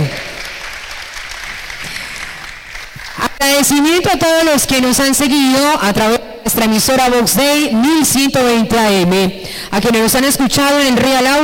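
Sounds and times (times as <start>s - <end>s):
audience applause: 0.0s - 3.2s
speech: 3.6s - 11.4s.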